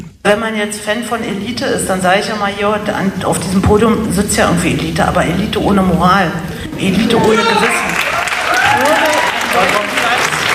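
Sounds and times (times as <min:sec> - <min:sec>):
speech: 0:00.3 - 0:08.0
audience applause at a podium debate: 0:06.7 - 0:10.5.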